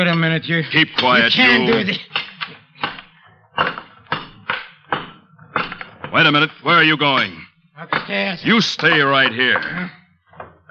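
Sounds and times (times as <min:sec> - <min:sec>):
speech: 0:00.0 - 0:02.2, 0:06.1 - 0:10.0
crowbar knocking down a brick wall: 0:01.0 - 0:06.3, 0:07.9 - 0:09.8.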